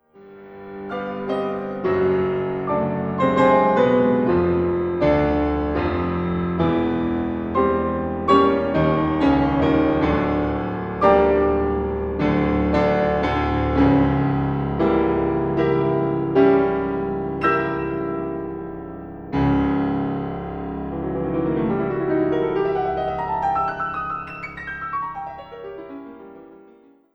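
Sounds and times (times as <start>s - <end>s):
fugue for piano in G minor: 0.0s - 27.1s.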